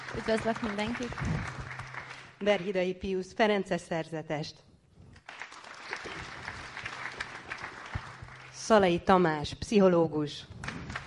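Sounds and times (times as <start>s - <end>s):
audience applause: 0.0s - 2.7s, 5.2s - 8.7s, 10.6s - 11.0s
speech: 0.2s - 1.6s, 2.4s - 4.7s, 8.7s - 10.5s.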